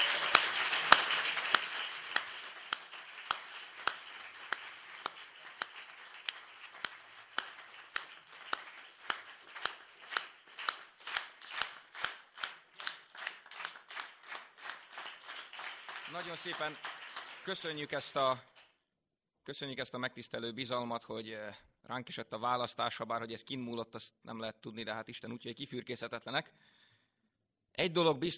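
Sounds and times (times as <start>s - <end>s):
crowd clapping in unison: 0.0s - 18.8s
speech: 16.2s - 16.9s, 17.5s - 18.5s, 19.4s - 26.6s, 27.8s - 28.3s.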